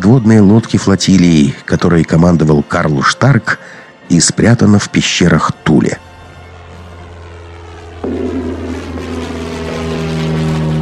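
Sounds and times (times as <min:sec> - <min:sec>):
speech: 0:00.0 - 0:06.1
Messerschmitt 264 and Heinkel 177 propeller aircraft taking off near Oslo: 0:03.4 - 0:10.8.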